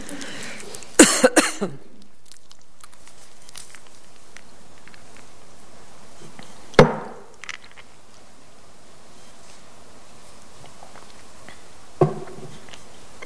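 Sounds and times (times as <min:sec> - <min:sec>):
person coughing from a throat tickle: 0:01.0 - 0:02.0.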